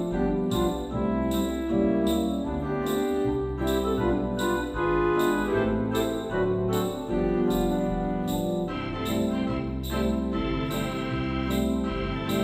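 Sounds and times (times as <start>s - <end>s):
organ solo: 0.0s - 12.4s.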